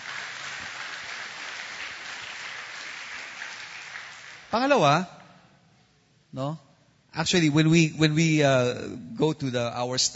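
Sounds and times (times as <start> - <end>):
congregation applauding during a church sermon: 0.0 - 5.0
speech: 4.5 - 5.2, 6.3 - 10.1.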